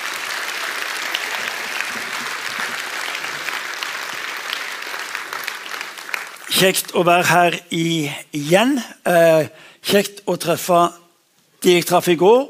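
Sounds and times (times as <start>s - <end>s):
audience applause: 0.0s - 6.8s
speech: 6.6s - 11.0s, 11.6s - 12.4s.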